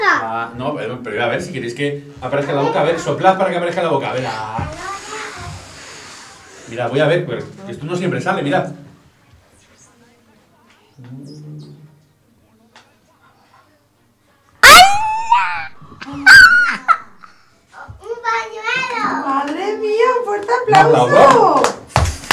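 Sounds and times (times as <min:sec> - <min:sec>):
speech: 0:00.5 - 0:04.9, 0:06.7 - 0:08.8, 0:11.0 - 0:11.4, 0:18.3 - 0:21.8
high-pitched excited shouts and squeals: 0:14.6 - 0:17.2
children clapping: 0:20.4 - 0:22.3.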